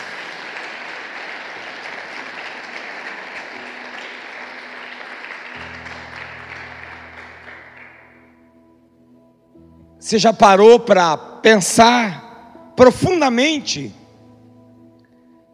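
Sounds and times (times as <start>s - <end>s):
audience applause: 0.0s - 8.2s
speech: 10.1s - 12.2s, 12.8s - 14.0s.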